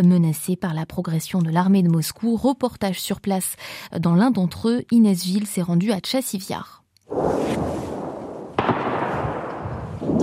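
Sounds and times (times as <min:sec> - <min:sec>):
speech: 0:00.0 - 0:07.8
bombs exploding: 0:07.1 - 0:10.2.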